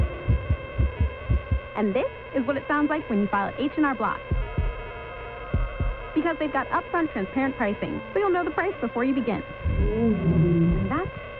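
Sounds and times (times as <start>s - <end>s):
racing heartbeat: 0.0s - 1.8s, 4.1s - 6.2s, 9.5s - 11.3s
hum: 0.0s - 11.3s
speech: 1.8s - 4.4s, 6.2s - 11.3s.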